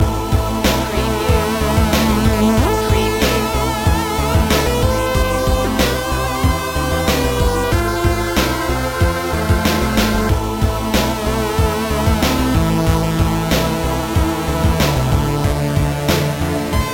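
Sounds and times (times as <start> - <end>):
retro video game music loop: 0.2 - 16.9.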